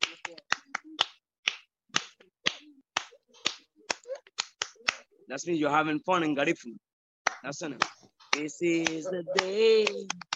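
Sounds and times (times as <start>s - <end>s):
rhythmic hand clapping: 0.0s - 5.1s, 7.2s - 10.3s
speech: 5.3s - 10.3s.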